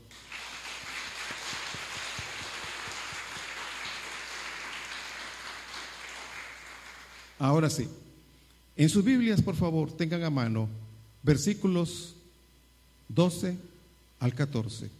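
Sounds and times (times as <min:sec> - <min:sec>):
audience applause: 0:00.1 - 0:07.4
speech: 0:07.4 - 0:08.0, 0:08.8 - 0:12.2, 0:13.1 - 0:14.9.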